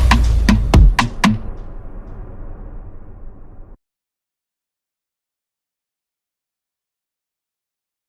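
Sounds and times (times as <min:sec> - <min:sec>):
funk pump music: 0:00.0 - 0:01.6.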